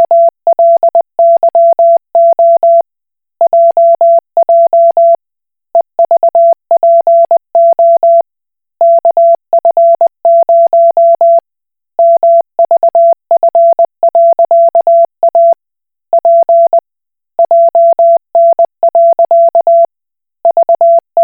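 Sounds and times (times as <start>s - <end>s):
Koch Morse code beeps: 0.0s - 2.8s, 3.4s - 5.2s, 6.0s - 8.2s, 8.8s - 11.4s, 12.0s - 15.6s, 16.2s - 16.8s, 17.4s - 19.9s, 20.5s - 21.2s.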